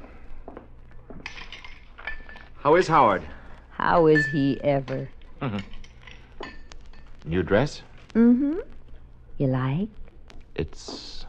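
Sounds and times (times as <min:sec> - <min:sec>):
glassware clinking while mixing a drink: 0:01.2 - 0:02.5, 0:04.0 - 0:07.0
speech: 0:02.6 - 0:05.8, 0:07.2 - 0:08.8, 0:09.4 - 0:10.0, 0:10.6 - 0:11.2.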